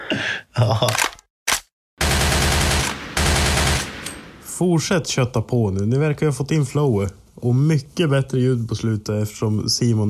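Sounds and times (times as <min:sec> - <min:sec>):
speech: 0:00.6 - 0:01.1, 0:04.6 - 0:10.0
gunshot sound effect: 0:00.9 - 0:04.5
sustained burst of rapid gunfire: 0:01.0 - 0:04.4.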